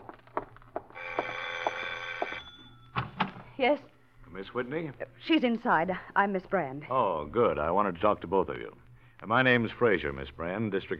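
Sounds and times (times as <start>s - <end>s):
doorbell ringing: 1.0s - 3.0s
speech: 3.6s - 10.9s.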